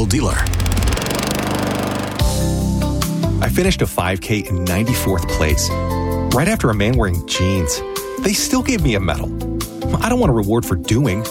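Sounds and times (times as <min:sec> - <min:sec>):
speech: 0:00.0 - 0:00.5, 0:03.6 - 0:11.2
Gravely lawn mower engine running: 0:00.0 - 0:02.7.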